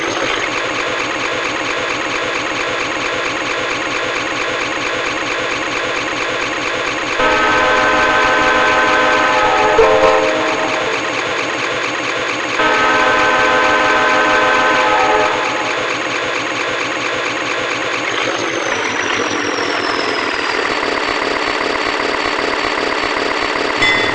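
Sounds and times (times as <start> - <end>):
ALCO C425 diesel locomotive in the US: 0.0 - 24.1.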